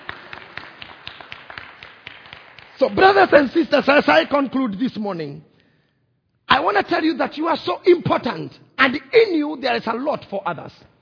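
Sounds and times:
audience clapping for a speaker: 0.0s - 3.4s
speech: 2.8s - 5.5s, 6.6s - 10.9s.

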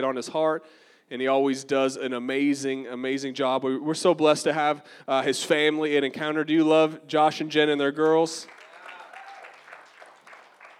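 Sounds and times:
speech: 0.0s - 8.6s
audience clapping: 8.0s - 10.7s.

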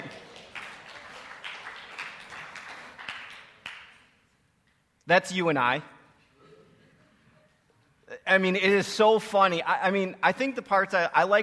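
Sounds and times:
audience applause: 0.0s - 4.0s
speech: 5.1s - 6.0s, 8.3s - 11.4s.

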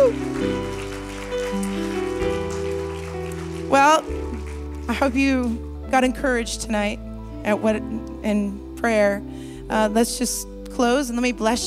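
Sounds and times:
audience applause: 0.0s - 5.7s
speech: 5.0s - 11.6s.

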